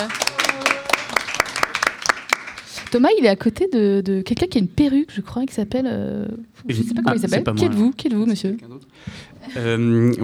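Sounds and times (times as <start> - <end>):
speech: 0.0 - 0.2, 2.9 - 10.2
evening audience hand claps for a masked guest: 0.0 - 2.9.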